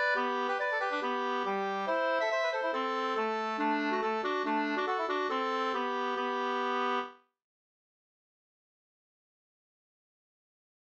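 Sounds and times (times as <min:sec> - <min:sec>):
schottische in G major: 0:00.0 - 0:07.0.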